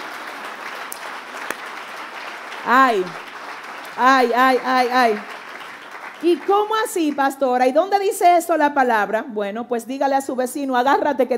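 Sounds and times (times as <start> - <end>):
audience applause: 0.0 - 7.6
speech: 2.6 - 3.3, 4.0 - 5.4, 6.2 - 11.3.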